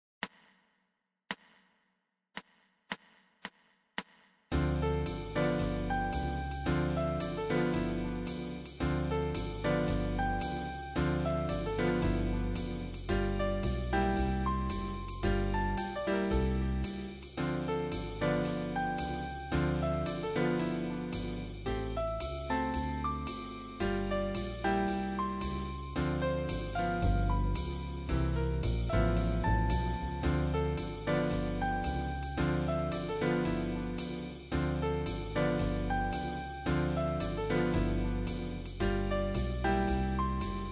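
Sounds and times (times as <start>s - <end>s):
drums: 4.5s - 40.7s
jazz music: 4.5s - 40.7s.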